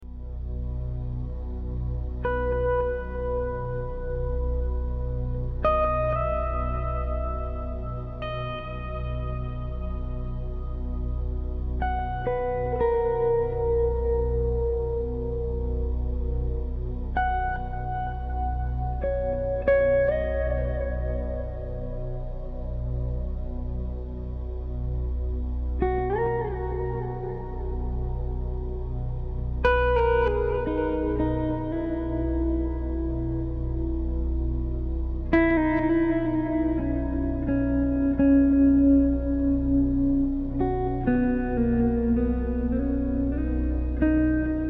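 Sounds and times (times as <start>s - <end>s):
spa relaxation music for massage: 0.0s - 44.6s.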